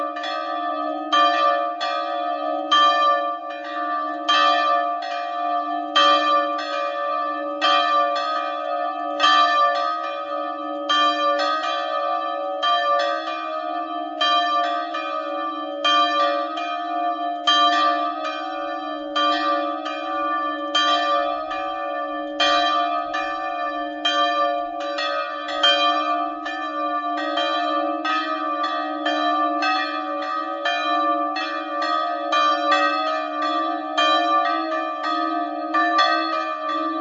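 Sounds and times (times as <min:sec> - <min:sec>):
bells ringing: 0:00.0 - 0:36.9.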